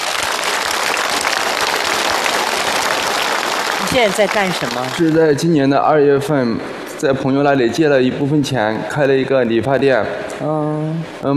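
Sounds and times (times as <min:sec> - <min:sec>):
audience applause: 0:00.0 - 0:05.6
speech: 0:03.9 - 0:11.3.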